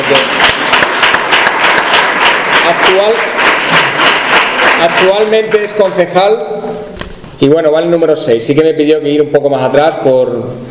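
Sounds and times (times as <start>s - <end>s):
applause: 0.0s - 6.1s
speech: 0.1s - 0.4s, 2.7s - 3.3s, 4.8s - 6.8s, 7.4s - 10.6s.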